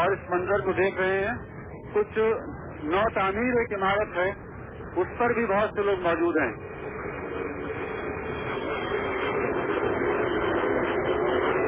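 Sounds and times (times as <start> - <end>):
slow-moving street traffic: 0.0 - 11.6
speech: 0.2 - 4.4, 5.0 - 6.7.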